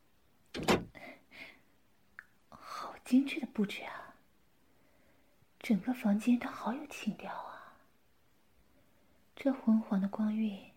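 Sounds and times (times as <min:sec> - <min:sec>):
unlocked door being opened to enter a room: 0:00.5 - 0:01.0
speech: 0:03.1 - 0:04.0, 0:05.6 - 0:07.5, 0:09.4 - 0:10.7.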